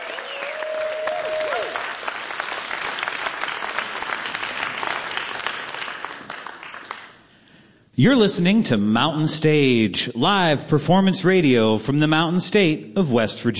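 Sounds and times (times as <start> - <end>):
audience applause: 0.0 - 7.3
speech: 8.0 - 13.5.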